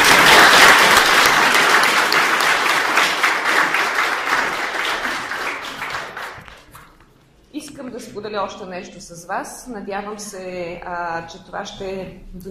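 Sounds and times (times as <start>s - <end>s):
audience applauding for the jury: 0.0s - 7.0s
speech: 8.4s - 12.4s.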